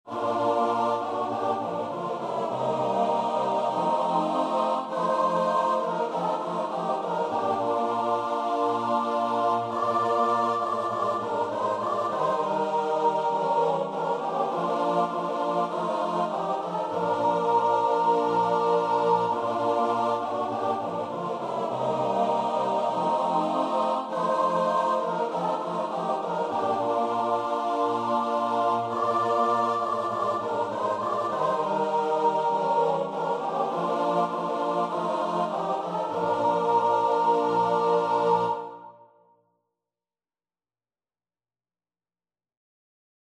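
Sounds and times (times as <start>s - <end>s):
choir singing: 0.0s - 39.2s.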